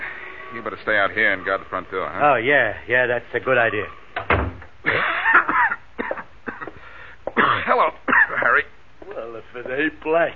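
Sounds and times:
speech: 0.5s - 5.5s, 9.4s - 10.3s
person coughing: 4.9s - 8.6s.

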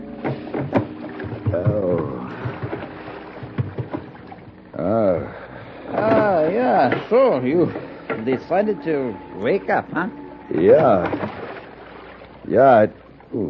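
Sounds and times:
wooden creaks of a small boat: 0.0s - 4.8s, 5.4s - 12.4s
water lapping against a small boat: 0.0s - 13.4s
groaning vocal sounds: 1.4s - 2.7s, 4.7s - 7.0s
speech: 1.5s - 1.8s, 7.0s - 11.2s, 12.5s - 13.4s.

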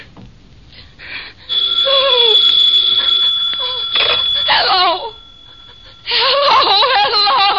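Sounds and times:
telephone ringing: 1.5s - 7.4s.

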